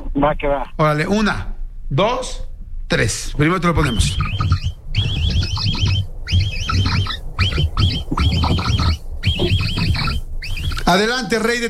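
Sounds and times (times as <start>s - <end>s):
speech: 0.2s - 4.7s, 10.9s - 11.6s
capybara calling: 3.8s - 11.2s.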